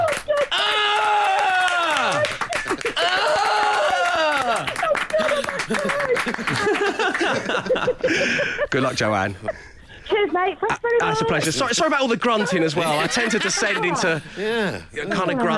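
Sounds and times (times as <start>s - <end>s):
round of applause: 0.0s - 7.5s
laughter: 1.8s - 9.7s, 11.7s - 15.5s
speech: 7.3s - 15.5s.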